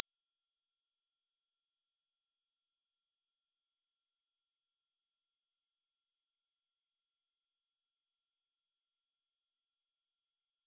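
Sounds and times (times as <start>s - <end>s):
5516 Hz pure sine tone: 0.0s - 10.6s.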